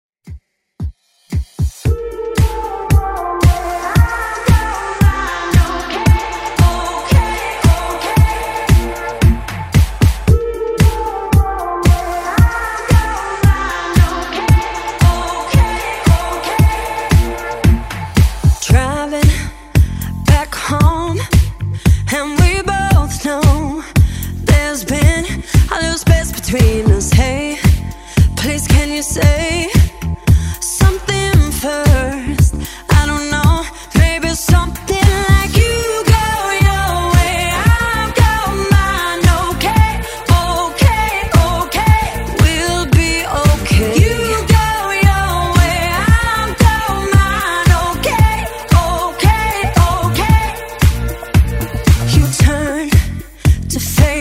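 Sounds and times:
Top 40 pop music: 1.3 - 54.1.

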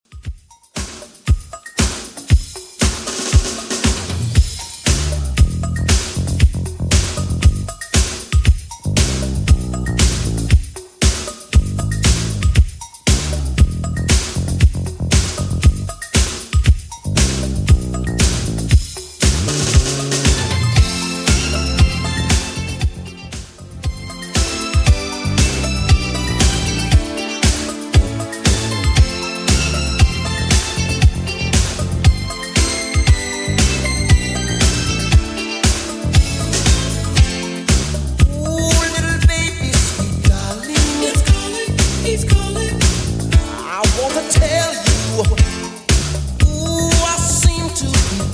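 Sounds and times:
Redrum 80s drum beat: 0.0 - 48.3.

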